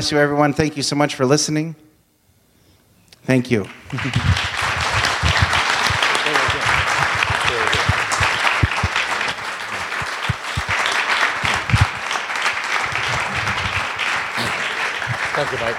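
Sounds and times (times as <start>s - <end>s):
speech: 0.0s - 1.9s, 3.2s - 4.6s
audience applauding: 3.6s - 15.7s.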